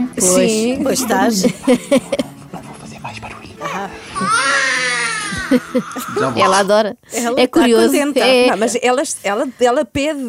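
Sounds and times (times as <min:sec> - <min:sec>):
speech: 0:00.2 - 0:02.2, 0:05.5 - 0:10.2
laughter: 0:01.0 - 0:02.9, 0:03.6 - 0:06.4
newborn baby crying: 0:04.0 - 0:06.6.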